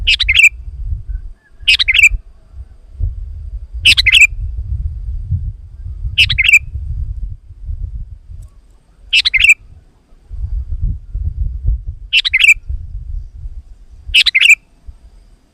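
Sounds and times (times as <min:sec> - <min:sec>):
sooty-headed bulbul song: 0:00.0 - 0:03.0, 0:03.7 - 0:04.5, 0:05.6 - 0:06.8, 0:08.4 - 0:15.5.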